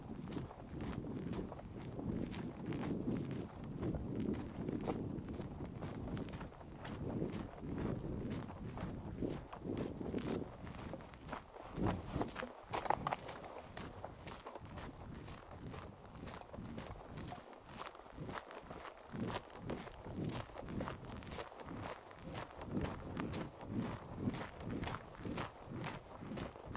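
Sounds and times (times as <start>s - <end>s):
footsteps on a moose hunt walk: 0.3s - 26.7s.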